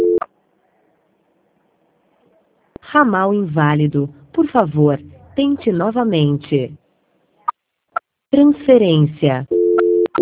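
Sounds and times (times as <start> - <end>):
telephone beep during a call transfer: 0.0 - 0.2, 9.5 - 10.2
speech: 2.9 - 6.8, 8.3 - 9.6.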